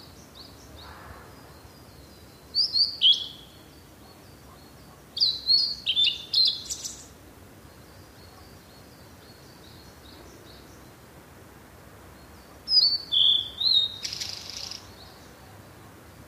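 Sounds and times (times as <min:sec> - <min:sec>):
blue-and-white flycatcher singing: 0:01.5 - 0:11.0, 0:12.6 - 0:15.5.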